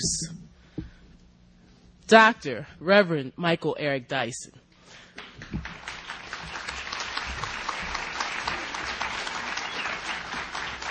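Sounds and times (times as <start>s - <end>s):
speech: 0.0s - 0.5s, 2.1s - 4.6s
audience applause: 5.2s - 10.8s.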